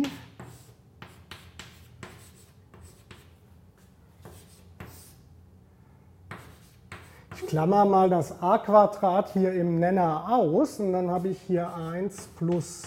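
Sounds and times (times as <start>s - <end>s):
handwriting on a board during a maths lecture: 0.0s - 5.2s, 6.3s - 7.6s, 11.1s - 12.8s
speech: 7.4s - 12.8s.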